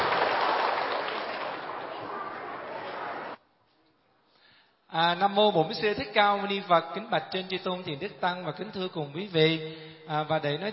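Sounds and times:
audience clapping for a singer at a Buddhist Vu Lan ceremony: 0.0 - 3.4
speech: 4.9 - 10.7.

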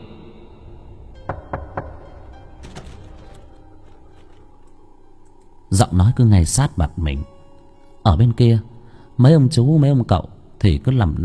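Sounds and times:
sharp knocking on a door: 1.2 - 3.4
speech: 5.7 - 7.3, 8.0 - 11.2.

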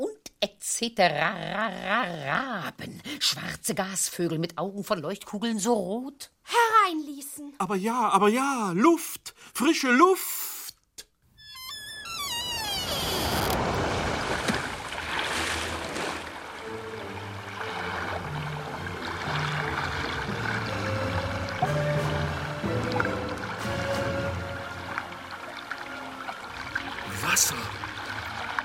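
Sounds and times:
speech: 0.6 - 10.4
flowing water through an open window: 11.5 - 28.6.

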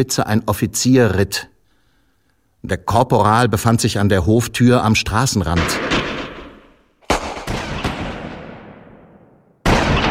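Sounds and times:
speech: 0.0 - 1.5, 2.6 - 6.0
gunshots fired: 5.5 - 10.0.

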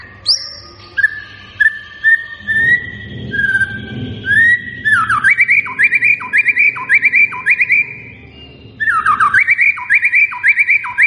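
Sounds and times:
white-rumped shama singing lure song: 0.0 - 11.0.

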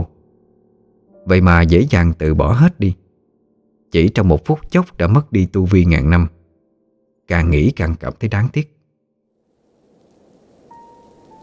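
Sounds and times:
speech: 1.3 - 3.0, 3.9 - 6.4, 7.3 - 8.8
heavy rain: 9.5 - 11.4.

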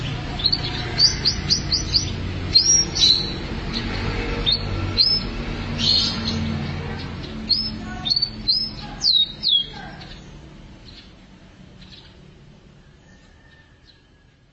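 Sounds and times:
canary song of short high chirps and whistles: 0.4 - 3.8, 4.4 - 6.5, 7.2 - 10.2.

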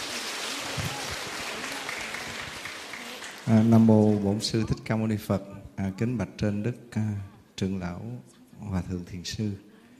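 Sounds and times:
audience applause at a Buddhist talk in Vietnam: 0.0 - 4.6
speech: 3.5 - 9.7.

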